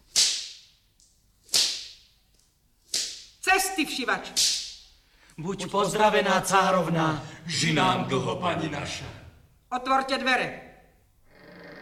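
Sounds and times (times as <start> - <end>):
whip swishes in a fairy-tale setting: 0.0 - 0.8, 1.5 - 2.1, 2.9 - 3.4, 4.3 - 4.8
speech: 3.5 - 4.6, 5.4 - 10.6.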